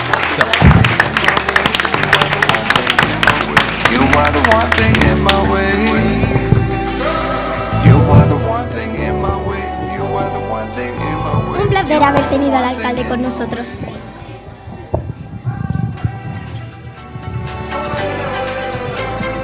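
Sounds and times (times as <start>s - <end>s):
studio audience applause: 0.0s - 5.8s
sustained musical tone: 1.5s - 19.4s
speech: 11.7s - 14.2s.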